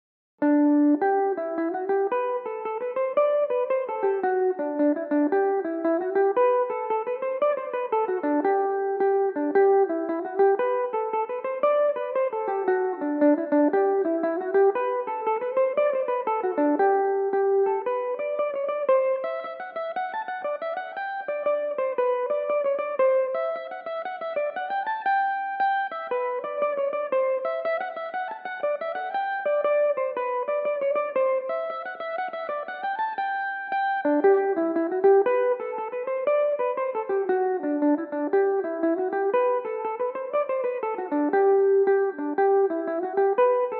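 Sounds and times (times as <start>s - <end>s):
Irish mandolin playing: 0.4s - 43.7s.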